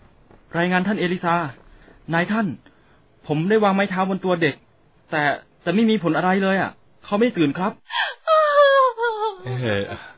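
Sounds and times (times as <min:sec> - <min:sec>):
speech: 0:00.6 - 0:08.0, 0:09.4 - 0:10.1
person crying over a child in a dramatized Bible story: 0:07.9 - 0:10.1.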